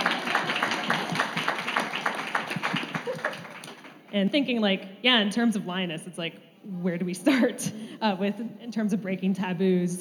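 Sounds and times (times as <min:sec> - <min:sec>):
audience clapping: 0:00.0 - 0:04.2
speech: 0:04.1 - 0:10.0.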